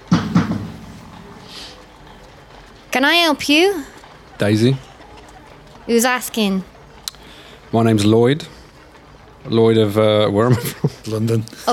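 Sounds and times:
knocking on a door: 0.1s - 1.0s
speech: 3.0s - 4.9s, 5.9s - 6.7s, 7.7s - 8.6s, 9.4s - 11.7s
laughter: 10.2s - 11.7s.

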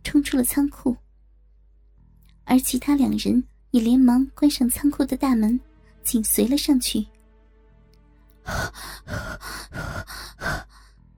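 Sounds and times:
speech: 0.2s - 1.0s, 2.5s - 7.1s, 8.4s - 10.6s
deep heavy breathing: 8.4s - 11.0s.

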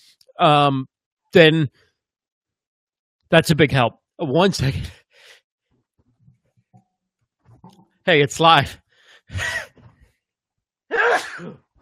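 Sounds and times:
speech: 0.4s - 1.8s, 3.3s - 5.0s, 8.0s - 9.7s, 10.9s - 11.6s
person coughing: 10.9s - 11.7s.

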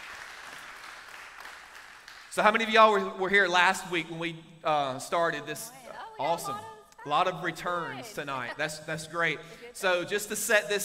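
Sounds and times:
crowd applauding: 0.0s - 2.5s
speech: 2.4s - 10.8s.

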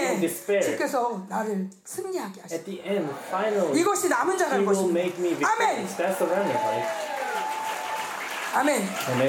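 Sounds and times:
speech: 0.2s - 7.2s, 8.5s - 9.2s
audience clapping: 3.7s - 9.2s.

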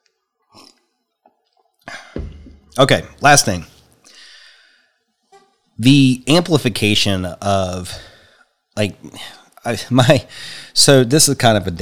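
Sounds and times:
speaker slurping and swallowing a drink: 0.5s - 0.9s
speech: 2.8s - 3.7s, 5.8s - 8.1s, 8.8s - 11.7s.

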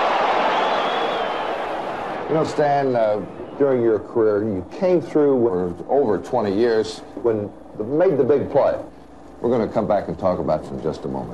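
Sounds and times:
baseball stadium crowd roaring: 0.0s - 3.7s
speech: 2.3s - 11.3s.

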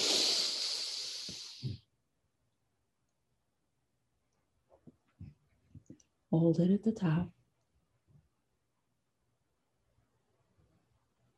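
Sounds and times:
quick inhaled breath during a guided breathing exercise: 0.0s - 1.8s
speech: 6.3s - 7.4s.

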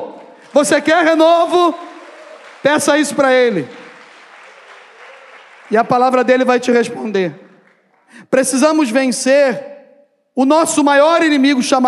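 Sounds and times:
audience applauding: 0.0s - 8.1s
speech: 0.5s - 1.9s, 2.6s - 3.8s, 5.7s - 7.4s, 8.1s - 9.7s, 10.4s - 11.8s.

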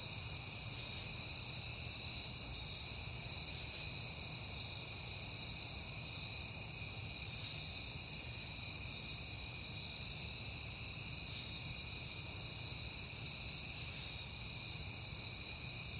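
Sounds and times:
cricket chorus: 0.0s - 15.9s.

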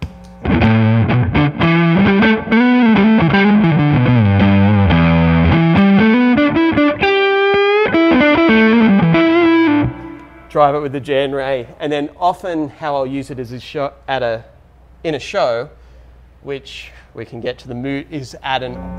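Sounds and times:
electric guitar through a fuzz pedal with gain all the way up: 0.0s - 10.5s, 18.7s - 18.9s
speech: 10.6s - 15.8s, 16.4s - 18.9s.

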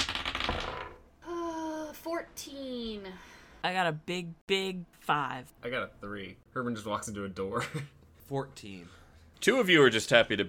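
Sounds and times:
dice rolling on a table: 0.0s - 1.0s
speech: 2.2s - 10.4s.

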